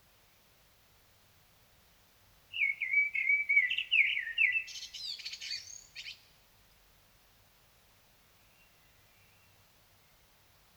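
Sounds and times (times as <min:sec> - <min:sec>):
Common blackbird singing: 0:02.6 - 0:06.1.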